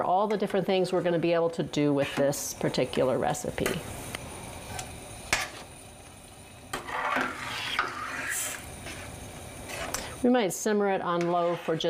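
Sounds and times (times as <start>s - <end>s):
speech: 0.0s - 4.2s, 10.2s - 11.8s
spoon scraping and stirring a mixture in a pot: 6.7s - 10.2s, 11.0s - 11.8s.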